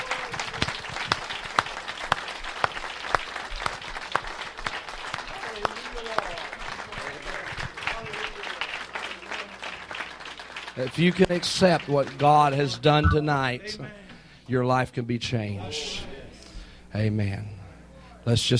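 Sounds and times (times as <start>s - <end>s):
audience applause, hand clapping: 0.0s - 12.2s
speech: 10.8s - 16.1s, 16.9s - 17.6s, 18.2s - 18.5s.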